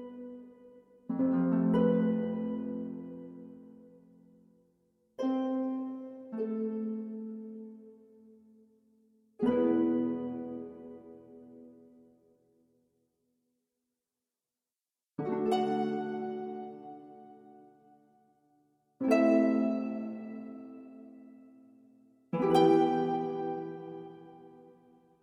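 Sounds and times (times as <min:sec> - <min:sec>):
harp: 0:00.0 - 0:04.4, 0:05.1 - 0:08.6, 0:09.4 - 0:12.1, 0:15.2 - 0:18.0, 0:19.0 - 0:25.2.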